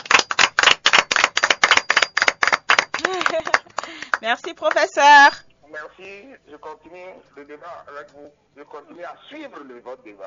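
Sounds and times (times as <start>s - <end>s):
audience applause: 0.0s - 4.2s
speech: 3.3s - 10.2s.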